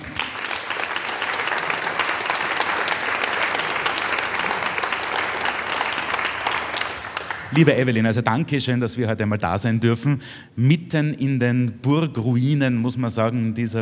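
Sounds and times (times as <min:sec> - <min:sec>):
audience applause: 0:00.0 - 0:07.8
speech: 0:07.5 - 0:13.8.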